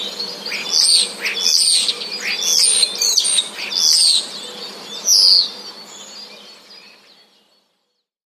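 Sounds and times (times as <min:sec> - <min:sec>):
starlings giving high vibrating whistles: 0:00.0 - 0:04.4.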